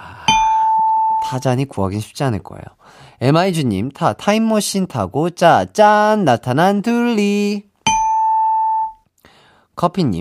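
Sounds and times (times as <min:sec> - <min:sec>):
ding-dong-dang correct-answer chime: 0:00.3 - 0:01.4, 0:07.9 - 0:09.0
speech: 0:01.3 - 0:07.7, 0:09.8 - 0:10.2.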